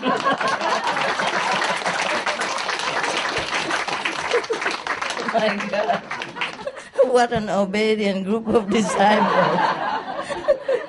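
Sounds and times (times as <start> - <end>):
laughter: 0.0 - 7.0, 8.6 - 10.8
audience clapping: 0.0 - 7.1
speech: 5.4 - 6.2, 7.1 - 9.8.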